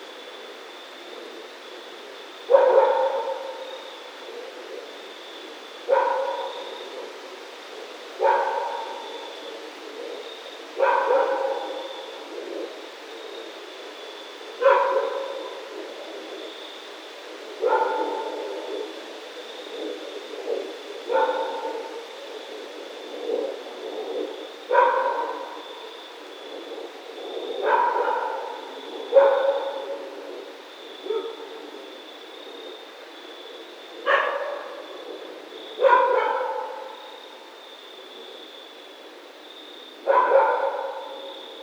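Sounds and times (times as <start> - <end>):
raccoon: 2.5 - 4.9, 5.8 - 7.1, 8.2 - 12.8, 14.5 - 16.6, 17.5 - 32.8, 33.5 - 38.1, 40.0 - 41.6.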